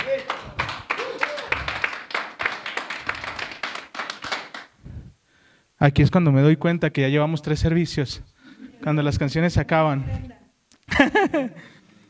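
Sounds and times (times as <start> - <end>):
audience clapping applause: 0.0 - 4.8
speech: 5.8 - 11.8
laughter: 10.9 - 11.7.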